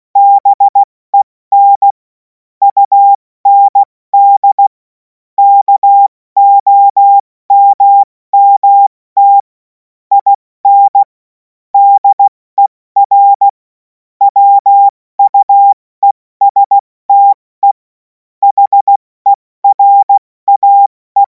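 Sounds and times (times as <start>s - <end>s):
morse code: 0.2s - 0.9s, 2.6s - 4.7s, 5.4s - 9.5s, 10.1s - 11.1s, 11.8s - 13.6s, 14.3s - 17.8s, 18.4s - 21.2s.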